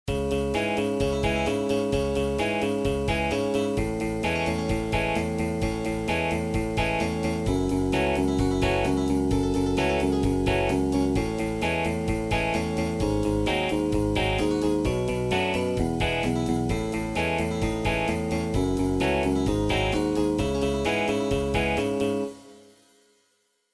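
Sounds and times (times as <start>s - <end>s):
instrumental music: 0.1s - 23.7s.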